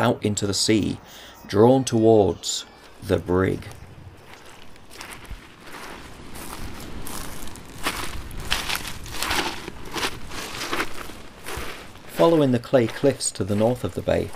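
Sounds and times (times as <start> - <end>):
speech: 0.0 - 3.8, 12.2 - 14.3
noise: 0.0 - 14.3
footsteps on slippery seaweed: 2.8 - 14.3
seaweed popping: 6.2 - 12.3.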